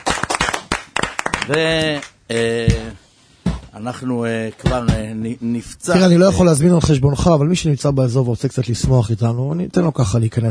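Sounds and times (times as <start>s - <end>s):
irregular hand clapping: 0.0s - 2.9s
speech: 1.5s - 3.0s, 3.8s - 10.4s.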